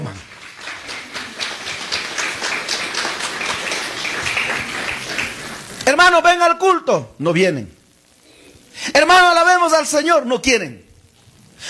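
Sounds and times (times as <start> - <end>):
crowd clapping: 0.0 - 6.0
speech: 5.9 - 7.8, 8.8 - 10.8.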